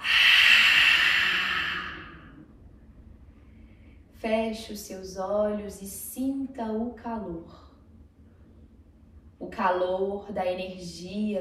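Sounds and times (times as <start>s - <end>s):
deep inhale and exhale breathing: 0.0s - 4.1s
speech: 4.2s - 7.6s, 9.5s - 11.3s.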